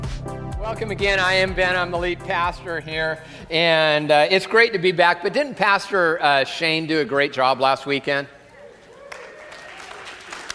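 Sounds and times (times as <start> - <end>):
speech: 0.6 - 8.4
audience clapping: 9.0 - 10.5.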